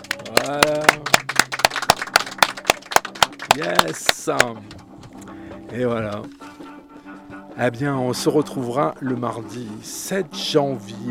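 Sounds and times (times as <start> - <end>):
sharp claps from an audience: 0.0 - 4.9
speech: 0.3 - 1.1, 3.6 - 4.9, 5.7 - 6.4, 7.6 - 11.1.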